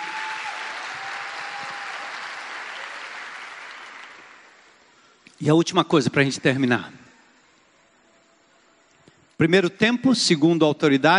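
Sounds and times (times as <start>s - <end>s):
audience applause: 0.0s - 4.9s
speech: 5.4s - 7.0s, 9.4s - 11.1s.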